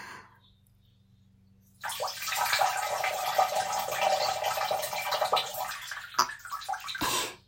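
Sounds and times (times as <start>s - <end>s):
person urinating in the morning: 1.8s - 7.3s.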